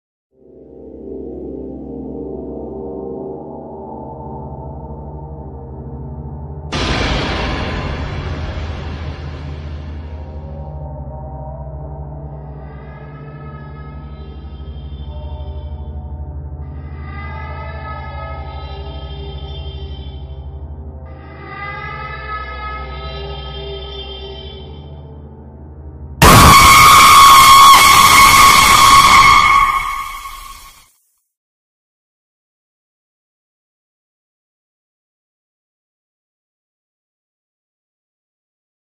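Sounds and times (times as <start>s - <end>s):
ghost horror ringtone: 26.2s - 30.8s.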